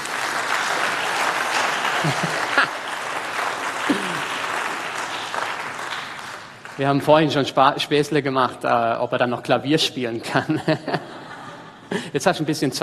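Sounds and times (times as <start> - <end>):
audience applause: 0.0 - 7.3
laughter: 1.7 - 3.0, 3.8 - 4.4, 10.2 - 12.3
speech: 2.0 - 2.5, 6.8 - 11.1, 12.1 - 12.8.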